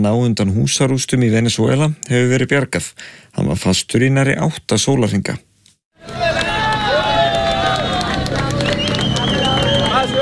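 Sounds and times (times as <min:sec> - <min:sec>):
speech: 0:00.0 - 0:06.3
crowd hubbub as a man is rescued from earthquake rubble in Venezuela: 0:06.0 - 0:10.2
scattered clapping: 0:06.0 - 0:10.2.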